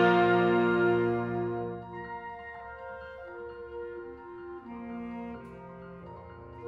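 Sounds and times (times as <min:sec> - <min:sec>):
ecstatic fanfare: 0:00.0 - 0:02.0.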